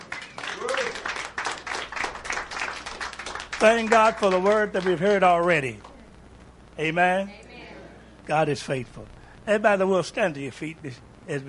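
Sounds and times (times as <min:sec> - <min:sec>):
audience hand clapping: 0:00.0 - 0:06.0
speech: 0:03.6 - 0:05.9, 0:06.8 - 0:07.4, 0:08.3 - 0:11.4.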